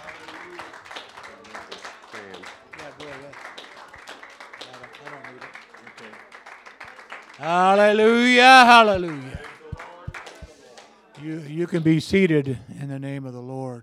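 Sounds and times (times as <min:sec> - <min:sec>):
audience hand clapping: 0:00.0 - 0:11.0
speech: 0:07.4 - 0:09.4, 0:11.2 - 0:13.8
raised voices calling out: 0:07.4 - 0:09.6.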